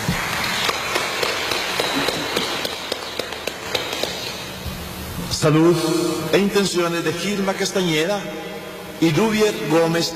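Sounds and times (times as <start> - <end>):
applause: 0.0 - 4.3
speech: 5.4 - 10.1.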